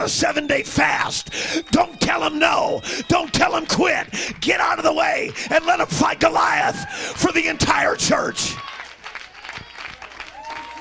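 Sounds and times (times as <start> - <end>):
speech: 0.0 - 8.7
audience applause: 0.0 - 10.8.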